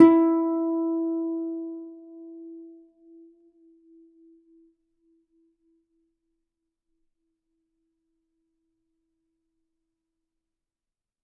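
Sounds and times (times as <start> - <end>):
harp: 0.0 - 2.4.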